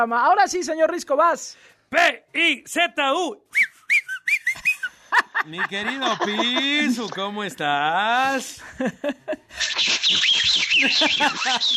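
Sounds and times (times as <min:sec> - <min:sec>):
speech: 0:00.0 - 0:03.7, 0:05.4 - 0:11.7
laughter: 0:04.6 - 0:07.8, 0:08.4 - 0:11.7
whistling firecracker: 0:09.6 - 0:11.6.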